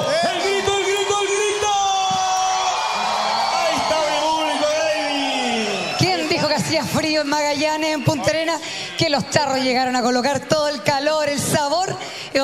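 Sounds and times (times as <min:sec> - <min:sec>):
high whoops and yells: 0:00.0 - 0:06.9
crowd applauding: 0:00.0 - 0:08.8
speech: 0:06.8 - 0:11.7.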